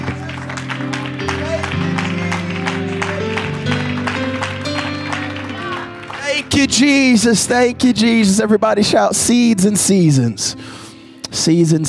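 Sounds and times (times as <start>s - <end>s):
audience applause: 0.0s - 7.3s
speech: 6.7s - 11.8s.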